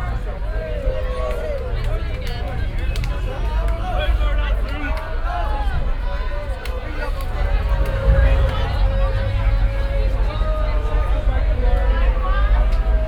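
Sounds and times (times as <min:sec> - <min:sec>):
city streets at night in Belfast: 0:00.0 - 0:13.0.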